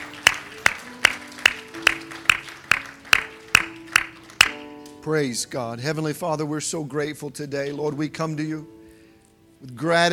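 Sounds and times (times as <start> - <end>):
audience hand clapping: 0.0 - 5.0
speech: 5.0 - 8.8, 9.6 - 10.1.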